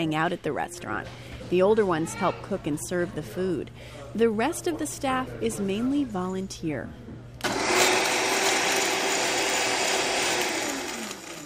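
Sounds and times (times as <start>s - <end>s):
speech: 0.0s - 7.0s
juicer juicing whole watermelons with rinds: 7.4s - 11.4s.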